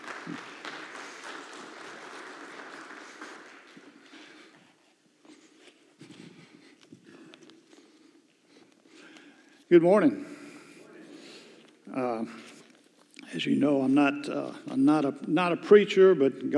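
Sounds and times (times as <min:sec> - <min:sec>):
church audience applause welcoming a guest speaker: 0:00.0 - 0:04.3
speech: 0:09.7 - 0:10.3, 0:12.2 - 0:12.5, 0:13.4 - 0:16.5.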